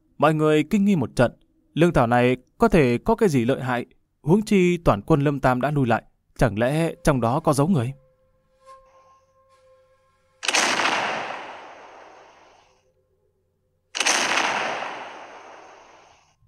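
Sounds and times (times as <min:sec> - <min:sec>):
faint tones: 0:00.0 - 0:16.4
speech: 0:00.2 - 0:08.0
heavy cannon blasts: 0:10.4 - 0:12.7, 0:14.0 - 0:16.3.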